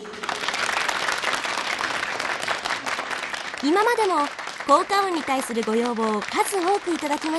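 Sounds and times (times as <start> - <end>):
small group applause, library sound effect: 0.0 - 7.3
speech: 3.6 - 7.3.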